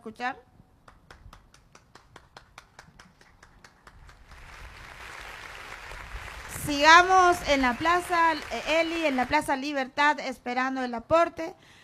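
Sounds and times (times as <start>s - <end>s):
speech: 0.0s - 0.5s, 6.6s - 11.8s
single person clapping: 0.8s - 6.4s
crowd applause: 3.2s - 9.4s.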